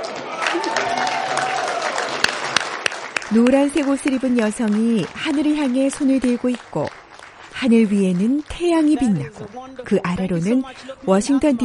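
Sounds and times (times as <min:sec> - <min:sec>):
crowd applause: 0:00.0 - 0:09.7
speech: 0:03.3 - 0:07.0, 0:07.6 - 0:11.6.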